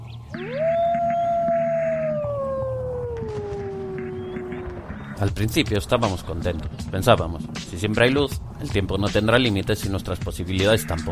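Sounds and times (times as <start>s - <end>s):
lone wolf howling: 0.4s - 5.1s
speech: 5.2s - 11.0s.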